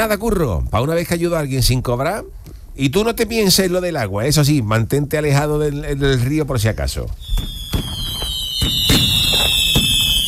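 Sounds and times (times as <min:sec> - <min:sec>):
speech: 0:00.0 - 0:08.0, 0:08.6 - 0:09.1
fireworks exploding: 0:07.1 - 0:10.2.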